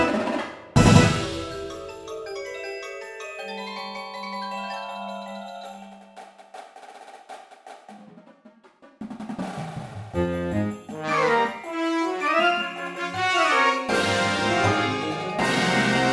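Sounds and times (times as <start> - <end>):
classical suite: 0.0 - 2.6, 10.2 - 16.1.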